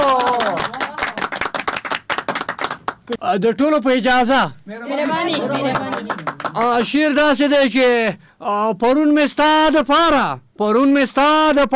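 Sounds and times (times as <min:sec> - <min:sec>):
audience clapping for a poet at a poetry gathering: 0:00.0 - 0:03.2, 0:04.9 - 0:07.2
speech: 0:03.1 - 0:11.7.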